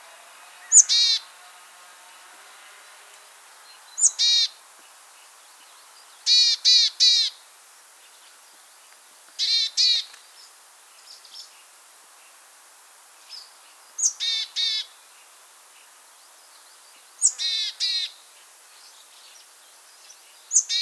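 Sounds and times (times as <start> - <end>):
willow tit calling: 0.0 - 1.4, 3.2 - 7.4, 9.4 - 10.5, 13.3 - 14.9, 17.2 - 18.2, 20.1 - 20.8.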